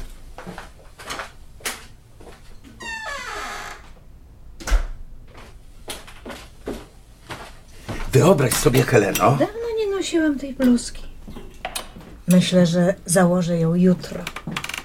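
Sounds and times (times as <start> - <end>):
apartment door hinge creaking: 2.8 - 4.0, 14.2 - 14.8
apartment door shutting with a dull thud: 4.6 - 5.0
speech: 8.1 - 11.1, 12.3 - 14.4.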